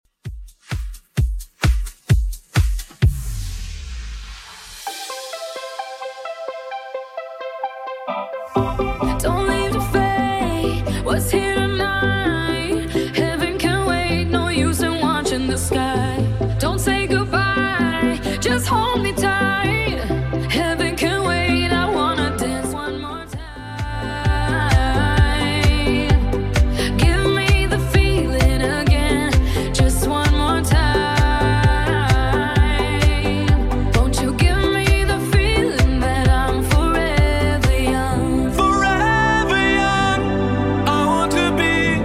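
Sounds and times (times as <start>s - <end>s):
club house music: 0.1s - 42.0s.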